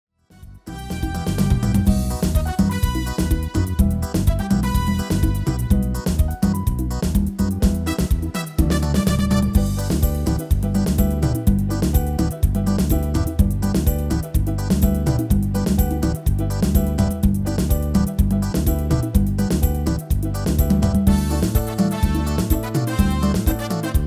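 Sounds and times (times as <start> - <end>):
MIDI music: 0.4 - 24.0.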